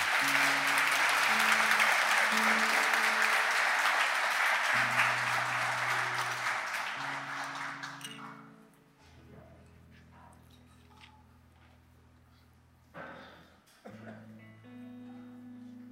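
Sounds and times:
applause: 0.0 - 8.6.

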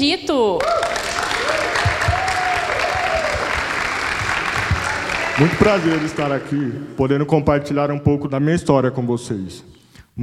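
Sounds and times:
speech: 0.0 - 0.9, 5.4 - 10.2
audience applause: 0.6 - 6.9.

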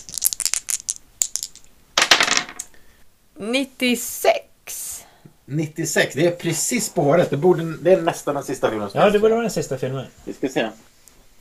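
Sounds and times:
dice being rolled: 0.0 - 2.7
speech: 3.4 - 4.8, 5.5 - 10.9.

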